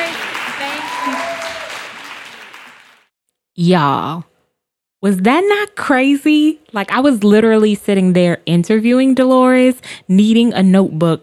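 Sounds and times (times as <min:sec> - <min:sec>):
faint vocal cheers: 0:00.0 - 0:02.4
audience applause: 0:00.0 - 0:03.1
speech: 0:03.6 - 0:04.3, 0:05.0 - 0:11.2.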